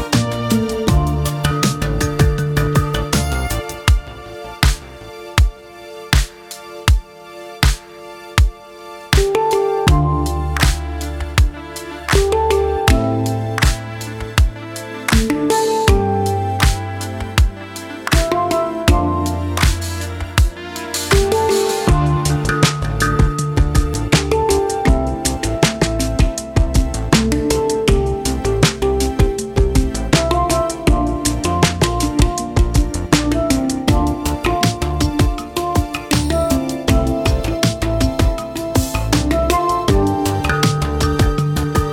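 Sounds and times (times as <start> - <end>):
handpan playing: 0.0 - 5.6, 9.2 - 41.9.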